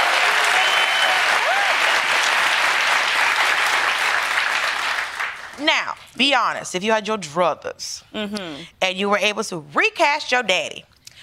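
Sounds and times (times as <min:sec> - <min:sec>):
clapping: 0:00.0 - 0:05.6
speech: 0:05.6 - 0:10.9.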